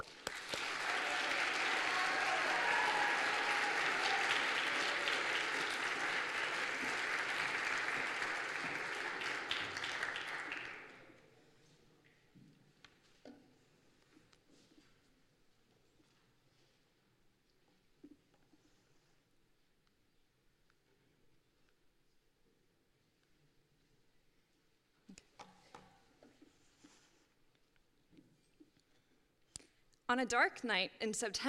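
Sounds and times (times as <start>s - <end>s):
audience applause for storyteller: 0.0s - 11.1s
speech: 30.1s - 31.4s.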